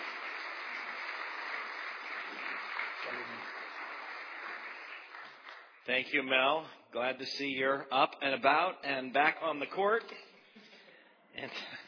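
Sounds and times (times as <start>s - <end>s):
church congregation at Riverview Church applauding a guest speaker: 0.0s - 6.0s
speech: 5.8s - 10.3s, 11.4s - 11.8s.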